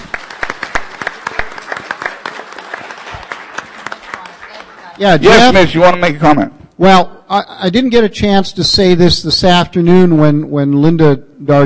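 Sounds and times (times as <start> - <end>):
audience applause: 0.0 - 5.6
speech: 5.0 - 11.6.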